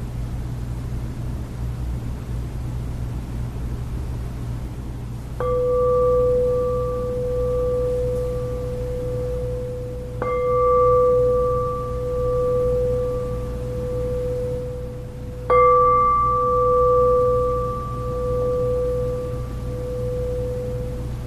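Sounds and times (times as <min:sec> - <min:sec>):
low soft hum: 0:00.0 - 0:21.2
meditation bowl struck to close a meditation: 0:05.4 - 0:21.2.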